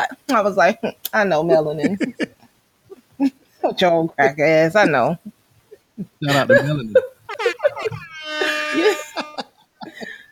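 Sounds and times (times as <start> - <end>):
speech: 0.0 - 2.4, 3.2 - 5.3, 6.0 - 7.1
laughter: 1.5 - 3.4, 6.2 - 10.2
air horn honks: 7.4 - 9.4.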